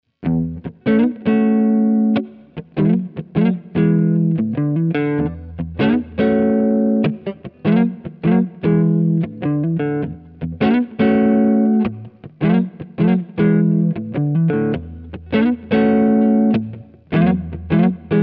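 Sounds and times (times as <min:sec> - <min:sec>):
clean rhythm guitar on neck pickup: 0:00.1 - 0:18.2.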